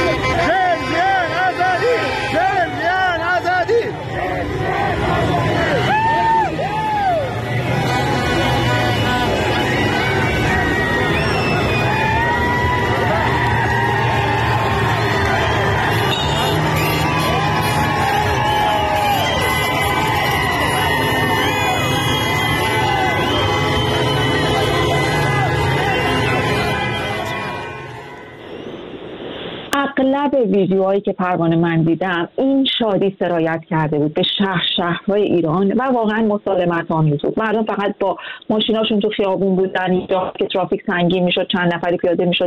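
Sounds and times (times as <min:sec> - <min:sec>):
street crowd cheering: 0:00.0 - 0:29.0
whistles: 0:10.8 - 0:12.0, 0:21.2 - 0:24.8
speech: 0:30.6 - 0:42.4.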